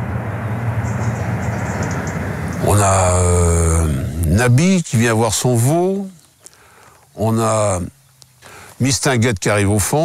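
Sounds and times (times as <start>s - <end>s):
train rumbling past: 0.0s - 4.2s
speech: 4.4s - 6.2s, 7.2s - 8.0s, 8.8s - 10.0s.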